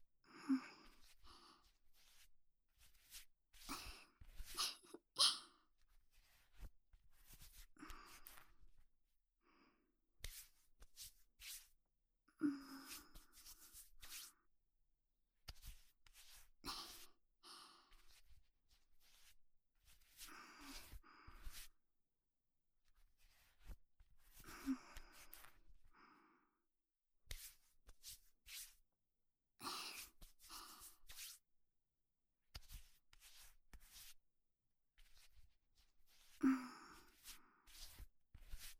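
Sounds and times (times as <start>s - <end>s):
hand massage ASMR: 0.7s - 5.4s, 6.1s - 8.8s, 10.2s - 11.7s, 12.5s - 14.4s, 15.4s - 17.1s, 17.9s - 21.7s, 23.2s - 25.6s, 27.3s - 28.8s, 29.7s - 31.4s, 32.5s - 34.2s, 35.0s - 38.7s.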